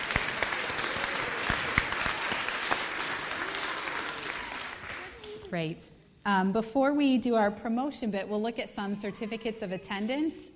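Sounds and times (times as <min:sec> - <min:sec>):
audience applause: 0:00.0 - 0:05.4
speech: 0:05.5 - 0:10.5.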